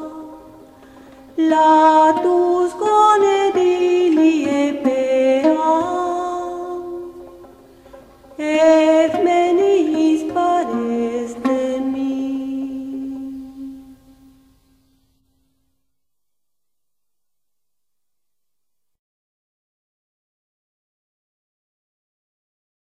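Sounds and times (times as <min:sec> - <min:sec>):
ancient Greek hymn: 0:00.0 - 0:15.9.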